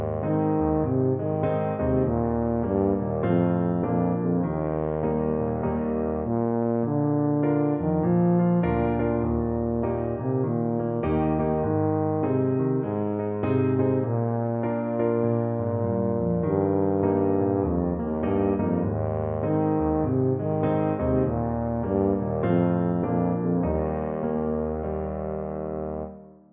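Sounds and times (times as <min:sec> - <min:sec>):
tuba playing: 0:00.0 - 0:26.3.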